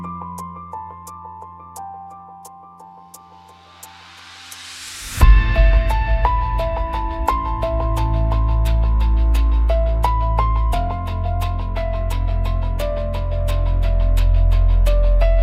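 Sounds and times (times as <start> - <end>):
deep investigative pulsing music: 4.9 - 15.4.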